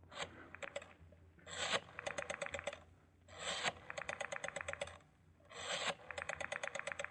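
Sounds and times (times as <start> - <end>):
rotary telephone being dialed: 1.5 - 2.8, 3.4 - 7.1.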